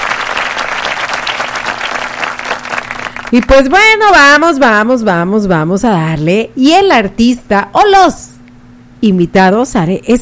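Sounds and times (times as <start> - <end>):
loud applause: 0.0 - 3.4
speech: 3.3 - 8.3, 9.0 - 10.1.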